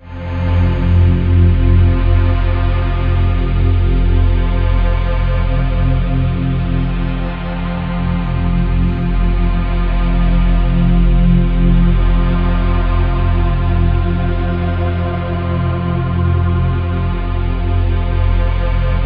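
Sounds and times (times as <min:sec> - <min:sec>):
ominous synth drones: 0:00.0 - 0:19.0.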